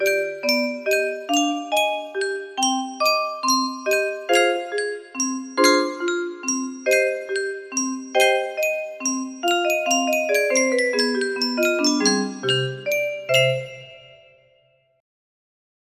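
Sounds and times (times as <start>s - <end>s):
music box waltz melody: 0.0s - 14.6s.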